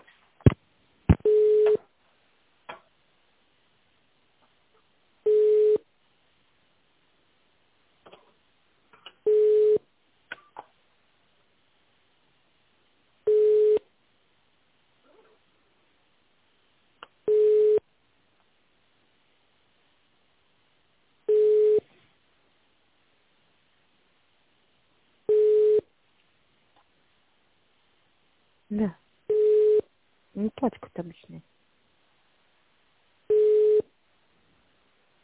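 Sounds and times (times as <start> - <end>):
telephone line beeps during call transfer: 1.2 - 1.8, 5.3 - 5.8, 9.3 - 9.8, 13.3 - 13.8, 17.3 - 17.8, 21.3 - 21.8, 25.3 - 25.8, 29.3 - 29.8, 33.3 - 33.9
speech: 28.7 - 29.0, 30.4 - 31.5.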